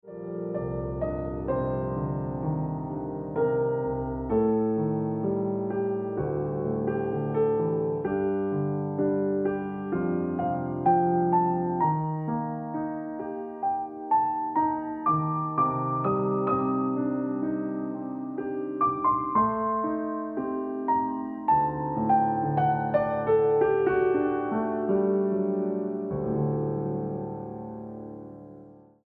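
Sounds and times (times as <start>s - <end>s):
piano ringtone music: 0.1s - 28.7s.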